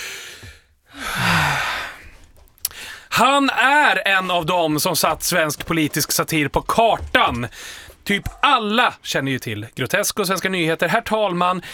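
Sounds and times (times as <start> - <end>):
breathy rush of air: 0.0 - 3.1, 7.5 - 8.0
speech: 3.2 - 11.7.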